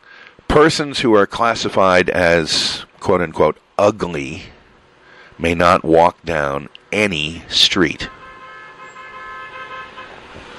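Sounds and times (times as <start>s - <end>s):
road noise: 0.0s - 10.5s
speech: 0.4s - 4.6s, 5.4s - 8.2s
car horn: 8.0s - 10.5s.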